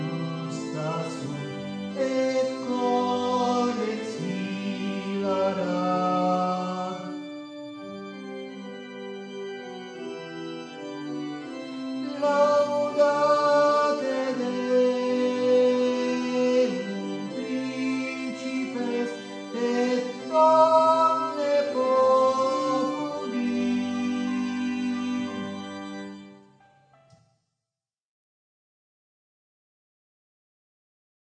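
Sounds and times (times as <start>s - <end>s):
sopranos singing: 0.0s - 7.3s, 11.8s - 26.0s.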